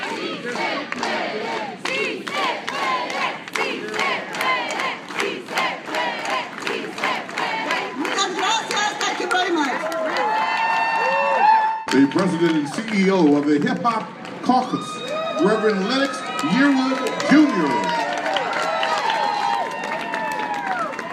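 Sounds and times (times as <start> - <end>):
large crowd chanting in unison: 0.0 - 8.6
large crowd clapping in a steady rhythm: 0.0 - 21.1
speech: 12.4 - 17.9.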